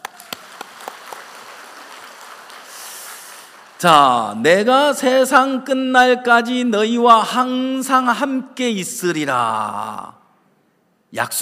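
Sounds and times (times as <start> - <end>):
audience applause: 0.0 - 3.9
speech: 3.8 - 10.2, 11.1 - 11.4.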